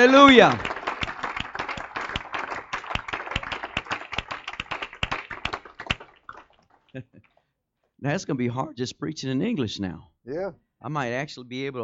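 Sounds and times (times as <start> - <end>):
speech: 0.0 - 0.7, 6.9 - 7.2, 8.0 - 11.8
audience clapping hands: 0.0 - 6.9.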